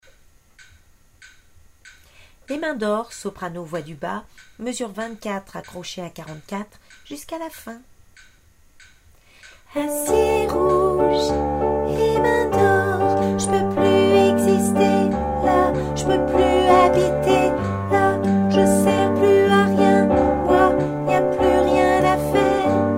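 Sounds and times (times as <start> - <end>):
soprano singing a refrain: 9.7 - 22.9.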